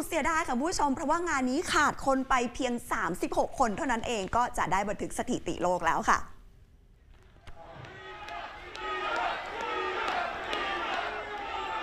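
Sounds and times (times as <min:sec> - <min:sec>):
speech: 0:00.0 - 0:06.3
crowd shouting recount: 0:07.5 - 0:11.8.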